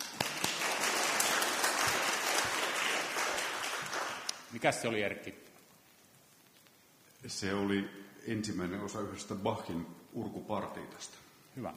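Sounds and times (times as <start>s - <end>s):
audience applause: 0.0s - 4.5s
speech: 4.6s - 5.5s, 7.2s - 11.7s.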